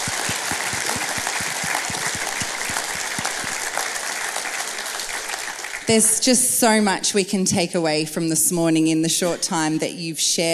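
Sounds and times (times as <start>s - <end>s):
audience applause: 0.0s - 6.5s
speech: 5.9s - 10.5s.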